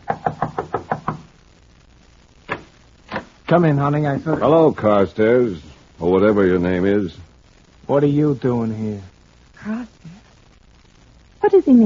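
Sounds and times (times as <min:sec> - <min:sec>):
knocking on a door: 0:00.0 - 0:01.3
speech: 0:03.5 - 0:07.3, 0:07.9 - 0:10.0, 0:11.4 - 0:11.8.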